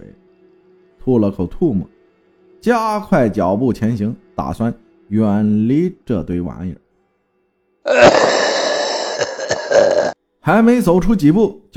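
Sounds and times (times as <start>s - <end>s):
speech: 1.0s - 2.0s, 2.6s - 6.8s, 7.8s - 8.4s, 10.4s - 11.7s
person coughing in the dark: 7.9s - 10.2s.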